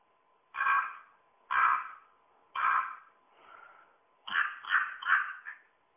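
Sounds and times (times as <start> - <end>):
common raven croaking call: 0.5 - 3.6, 4.2 - 5.7.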